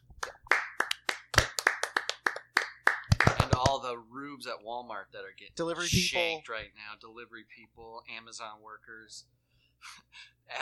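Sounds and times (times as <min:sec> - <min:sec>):
people clapping: 0:00.0 - 0:03.9
speech: 0:03.8 - 0:10.6.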